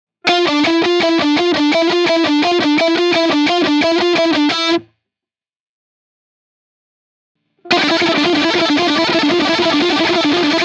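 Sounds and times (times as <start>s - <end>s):
sextuplet instrumental lick: 0.3s - 4.8s, 7.7s - 10.6s.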